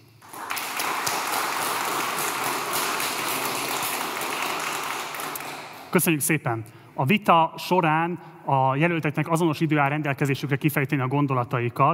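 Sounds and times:
crowd applauding: 0:00.2 - 0:05.9
speech: 0:05.9 - 0:11.9.

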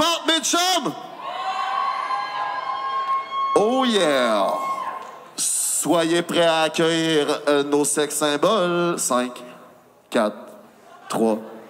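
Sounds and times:
speech: 0:00.4 - 0:01.2, 0:03.6 - 0:04.7, 0:05.8 - 0:09.5, 0:10.1 - 0:10.4, 0:11.1 - 0:11.5
audience cheering and shouting: 0:01.2 - 0:05.2.

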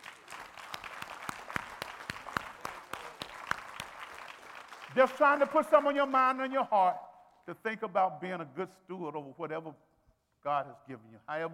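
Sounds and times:
audience clapping hands in praise: 0:00.0 - 0:07.4
speech: 0:05.0 - 0:11.5.

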